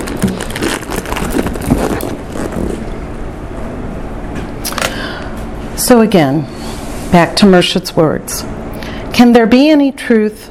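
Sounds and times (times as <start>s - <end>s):
rustling while fetching a phone: 0.0s - 2.9s
speech: 5.9s - 8.6s, 9.2s - 10.4s.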